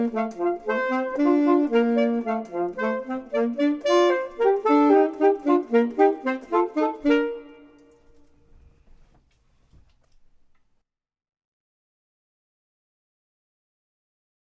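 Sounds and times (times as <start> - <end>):
clarinet: 0.0 - 8.5
saxophone: 0.0 - 8.5.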